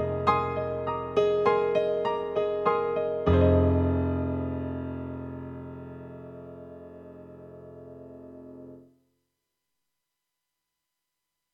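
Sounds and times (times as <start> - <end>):
stereo piano: 0.0 - 9.0.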